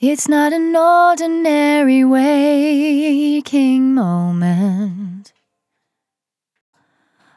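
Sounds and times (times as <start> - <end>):
vocal in F at 65 bpm: 0.0 - 5.3.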